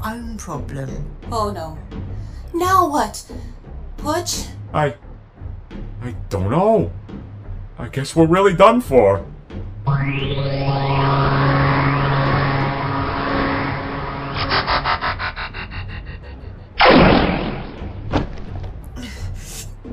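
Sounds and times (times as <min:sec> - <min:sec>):
speech: 0:00.0 - 0:05.0, 0:06.0 - 0:07.0, 0:07.8 - 0:11.5
long whining tone with sliding harmonics and a rapid fluttering pulse: 0:09.9 - 0:16.6
gunshot: 0:16.8 - 0:18.6.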